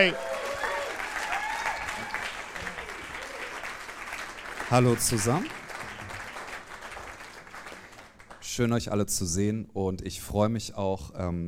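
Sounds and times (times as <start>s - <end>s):
speech: 0.0s - 0.3s, 4.7s - 5.6s, 8.6s - 11.4s
indistinct voices and whoops: 0.0s - 3.6s
audience clapping: 0.0s - 8.7s.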